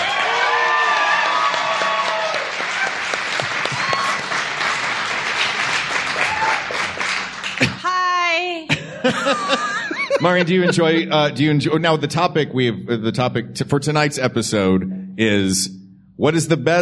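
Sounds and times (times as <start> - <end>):
audience applause and cheering: 0.0 - 8.0
laughter: 8.7 - 11.9
speech: 10.2 - 16.8.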